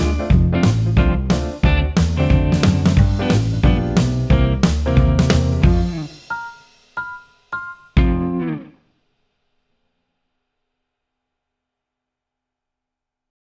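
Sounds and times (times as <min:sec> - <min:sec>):
jazz backing track: 0:00.0 - 0:08.7.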